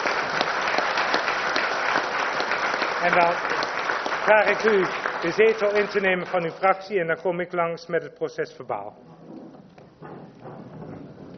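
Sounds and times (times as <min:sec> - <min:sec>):
applause for newly appointed council members: 0:00.0 - 0:07.0
speech: 0:03.0 - 0:03.6, 0:04.2 - 0:09.1.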